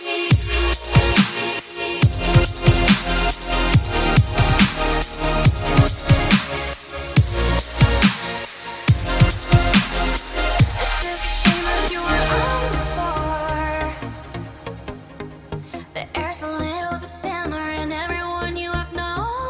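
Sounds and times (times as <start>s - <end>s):
trance beat: 0.0s - 15.2s
female vocals: 10.7s - 14.4s, 15.7s - 19.4s.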